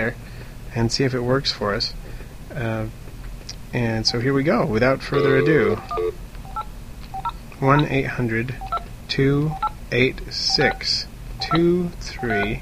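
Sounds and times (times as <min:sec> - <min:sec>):
speech: 0:00.0 - 0:03.0, 0:03.7 - 0:06.2, 0:07.6 - 0:12.6
telephone keypad tones: 0:05.2 - 0:07.3, 0:10.5 - 0:12.6.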